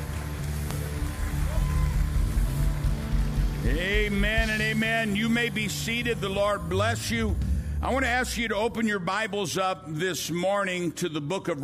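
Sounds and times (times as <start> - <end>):
audience clapping: 0.0 - 6.1
speech: 3.6 - 11.6.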